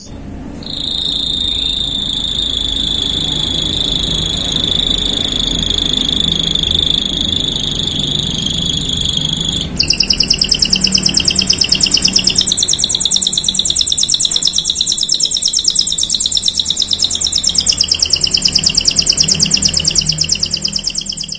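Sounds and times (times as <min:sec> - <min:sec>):
Canary song: 0:00.0 - 0:21.3.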